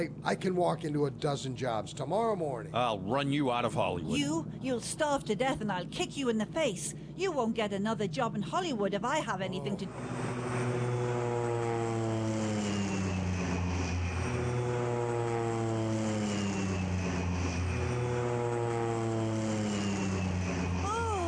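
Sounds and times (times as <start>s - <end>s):
speech: 0.0s - 10.6s
propeller airplane climbing with engine drone: 9.1s - 21.2s.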